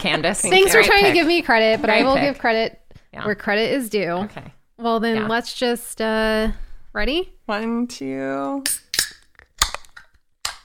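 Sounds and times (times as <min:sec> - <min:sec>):
speech: 0:00.0 - 0:08.8
can being opened: 0:08.7 - 0:10.6.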